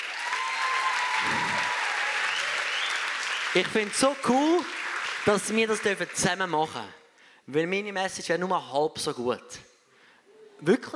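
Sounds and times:
audience applause: 0.0 - 6.6
speech: 3.6 - 9.7, 10.6 - 10.9.

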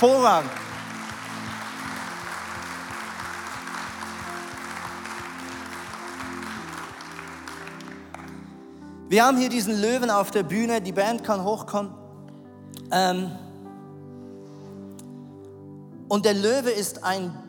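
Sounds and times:
speech: 0.0 - 0.6, 9.1 - 12.0, 12.9 - 13.4, 16.1 - 17.4
church audience applauding: 0.0 - 8.6.

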